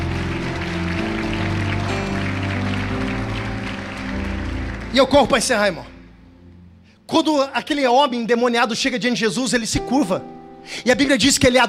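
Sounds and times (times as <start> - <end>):
audience applauding: 0.0 - 6.2
speech: 4.9 - 5.9, 7.1 - 11.6.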